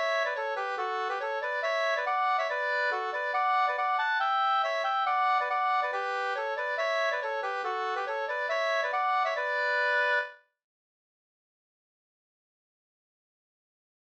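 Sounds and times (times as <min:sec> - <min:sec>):
schottische in four-four A major: 0:00.0 - 0:10.3.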